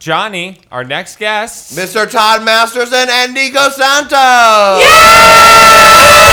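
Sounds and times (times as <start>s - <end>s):
speech: 0.0s - 6.3s
crowd screaming: 4.8s - 6.3s.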